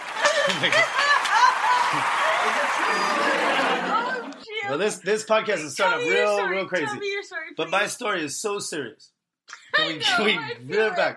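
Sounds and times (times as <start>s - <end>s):
audience applauding: 0.0s - 4.4s
audience snickering and chuckling: 0.0s - 4.4s
speech: 0.5s - 1.0s, 1.9s - 11.1s.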